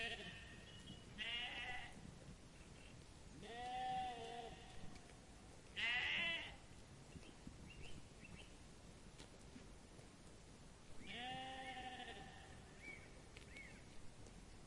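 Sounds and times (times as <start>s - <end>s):
sheep bleating: 0.0s - 0.6s, 1.2s - 2.0s, 3.4s - 5.0s, 5.8s - 6.6s, 11.0s - 12.7s.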